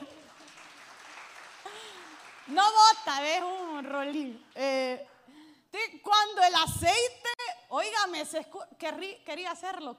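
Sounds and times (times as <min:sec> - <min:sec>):
audience applause: 0:00.0 - 0:02.8
speech: 0:02.5 - 0:05.1, 0:05.7 - 0:09.9.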